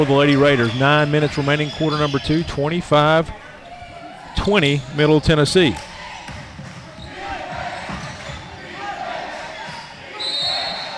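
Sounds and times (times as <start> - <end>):
speech: 0.0 - 3.4, 4.4 - 5.9
crowd murmuring: 0.0 - 10.9
indistinct voices: 0.0 - 10.9
basketball bouncing: 5.7 - 10.0
referee whistle blast at a basketball game: 10.1 - 10.9.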